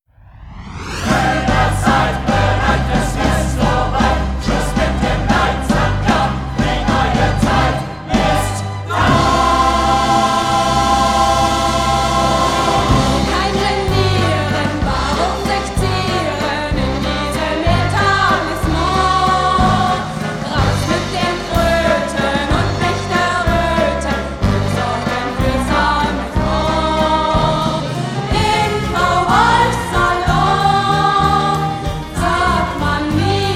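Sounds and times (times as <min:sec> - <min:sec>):
musical choir singing: 0:00.6 - 0:33.5.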